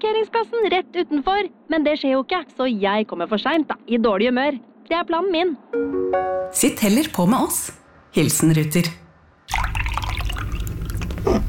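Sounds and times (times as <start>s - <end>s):
speech: 0.0s - 9.8s
person slurping and gurgling a glass of juice: 9.9s - 11.4s.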